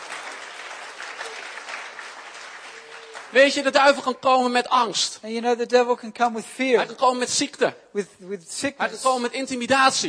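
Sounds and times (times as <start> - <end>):
audience applauding: 0.0 - 3.9
speech: 3.3 - 10.0.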